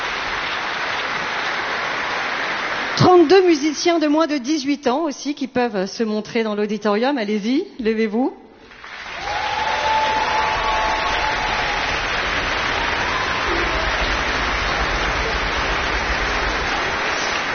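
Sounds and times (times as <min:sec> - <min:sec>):
audience applause in auditorium: 0:00.0 - 0:03.6, 0:08.7 - 0:17.5
speech: 0:03.0 - 0:08.4
faint cheering: 0:09.0 - 0:17.5.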